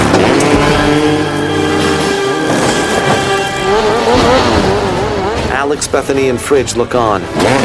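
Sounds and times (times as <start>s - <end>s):
motorcycle engine revving hard while accelerating up a shrine: 0.0s - 5.8s
speech: 5.7s - 7.6s.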